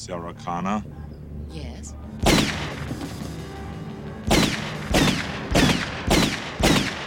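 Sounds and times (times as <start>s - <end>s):
speech: 0.0s - 3.1s
gunshots from the Terminator film scene: 2.2s - 3.3s, 4.2s - 7.0s.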